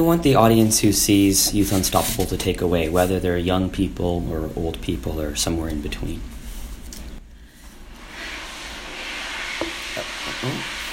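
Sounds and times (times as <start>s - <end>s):
speech: 0.0s - 6.3s
electric hand dryer blowing air: 7.9s - 10.9s.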